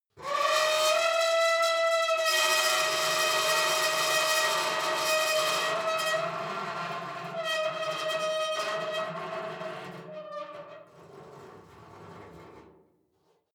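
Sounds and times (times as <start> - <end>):
long saturated metal squeal: 0.3 - 10.9.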